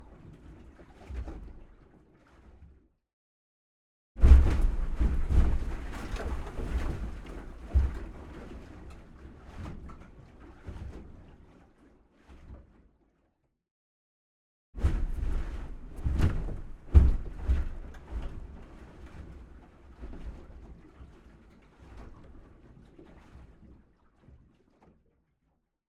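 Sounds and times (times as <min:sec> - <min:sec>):
medium waves impacting an aluminium boat hull: 0:04.2 - 0:11.5, 0:14.8 - 0:23.4.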